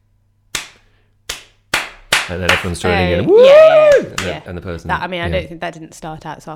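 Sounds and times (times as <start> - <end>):
slow sarcastic hand claps: 0.5 - 2.8, 3.8 - 4.4
speech: 2.3 - 6.5.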